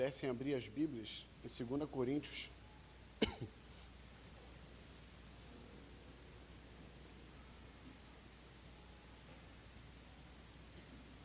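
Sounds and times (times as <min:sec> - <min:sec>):
speech: 0:00.0 - 0:02.6, 0:03.2 - 0:03.6
preacher coughing during a sermon: 0:03.2 - 0:03.6.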